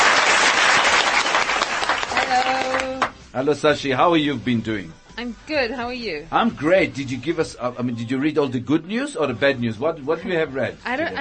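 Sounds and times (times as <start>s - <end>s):
audience applause: 0.0s - 3.1s
speech: 3.4s - 11.1s.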